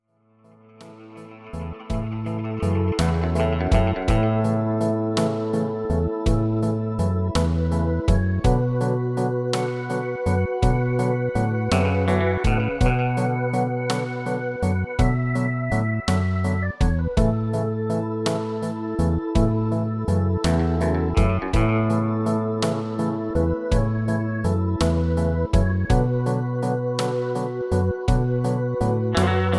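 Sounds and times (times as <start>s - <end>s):
instrumental music: 0.8s - 29.5s.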